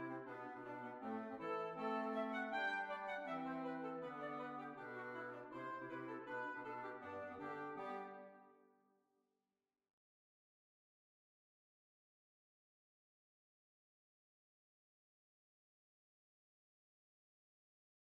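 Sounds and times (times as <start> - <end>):
hornpipe tune: 0.0 - 8.4.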